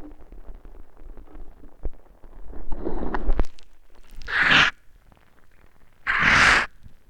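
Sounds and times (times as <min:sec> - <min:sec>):
person sipping mate: 0:02.5 - 0:04.7, 0:06.1 - 0:06.7.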